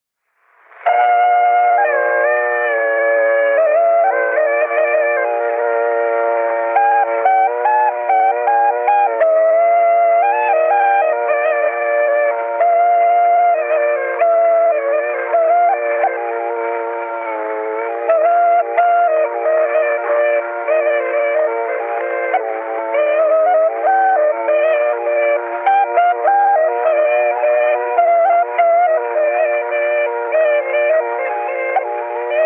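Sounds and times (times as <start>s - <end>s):
Estonian torupill bagpipe playing: 0.8s - 32.4s.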